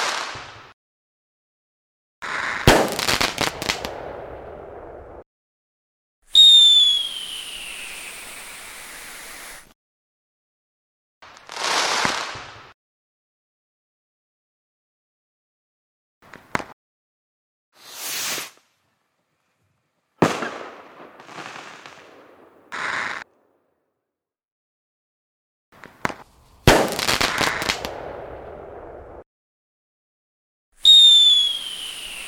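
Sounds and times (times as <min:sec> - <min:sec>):
fireworks for desensitization: 0:00.0 - 0:00.8, 0:02.2 - 0:05.2, 0:06.3 - 0:09.8, 0:11.3 - 0:12.8, 0:16.3 - 0:16.8, 0:17.8 - 0:18.8, 0:20.2 - 0:23.4, 0:25.8 - 0:29.2, 0:30.8 - 0:32.2.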